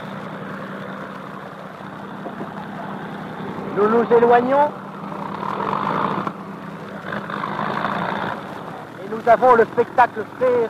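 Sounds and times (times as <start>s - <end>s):
four propeller engines of an airliner starting up and droning: 0.0s - 10.6s
speech: 3.8s - 4.8s, 9.2s - 10.6s.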